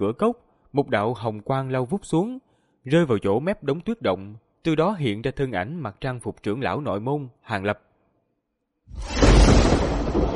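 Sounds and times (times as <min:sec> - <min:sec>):
speech: 0:00.0 - 0:07.9, 0:08.9 - 0:09.5
thunderclap rolling over a snowy valley: 0:08.9 - 0:10.3.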